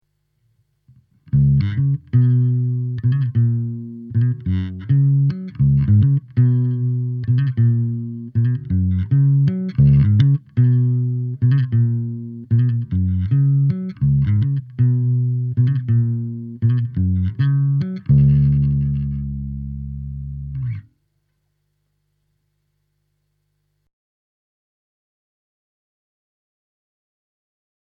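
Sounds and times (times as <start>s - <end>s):
bass: 0.8s - 21.1s.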